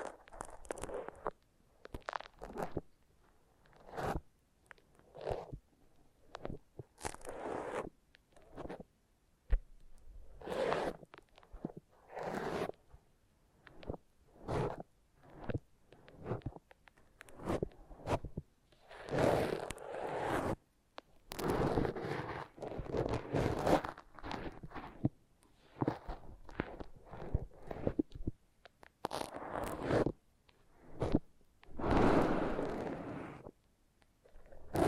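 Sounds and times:
foam rubbed and squeezed in a massage: 0.0s - 2.9s, 3.7s - 4.3s, 6.2s - 8.9s, 10.3s - 12.8s, 13.7s - 20.6s, 21.3s - 28.4s, 29.0s - 30.2s, 30.8s - 33.5s, 34.4s - 34.8s.

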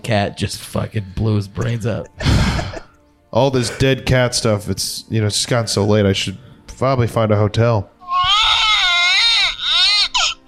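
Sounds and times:
speech: 0.0s - 2.5s, 3.3s - 7.9s
baby crying: 8.0s - 10.4s.

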